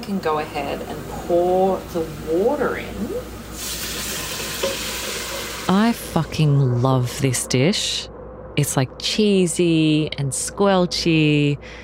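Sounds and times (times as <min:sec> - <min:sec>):
speech: 0:00.0 - 0:03.8, 0:05.7 - 0:11.8
onions sizzling in olive oil: 0:03.2 - 0:06.0.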